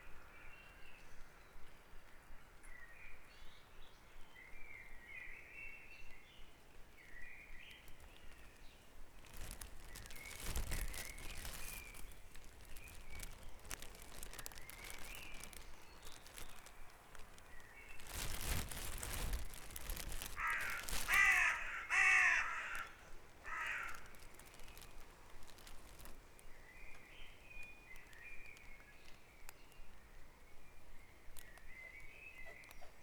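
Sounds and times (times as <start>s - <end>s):
birdsong at dawn: 2.4s - 33.0s
broad rustling noise: 7.8s - 29.2s
harsh caws: 20.4s - 24.1s.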